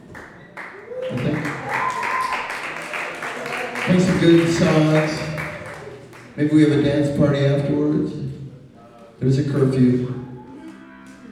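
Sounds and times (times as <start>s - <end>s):
audience applause for the DJs: 0.0s - 6.9s
speech: 4.0s - 5.2s, 6.4s - 8.2s, 9.2s - 10.2s.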